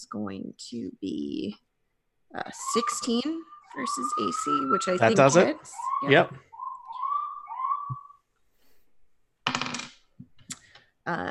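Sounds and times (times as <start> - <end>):
speech: 0.0 - 1.7, 2.3 - 6.5, 11.1 - 11.3
alarm going off: 2.5 - 8.1.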